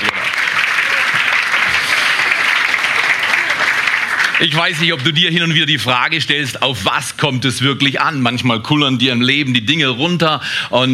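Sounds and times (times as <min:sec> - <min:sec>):
audience applause: 0:00.0 - 0:05.6
speech: 0:04.4 - 0:10.9.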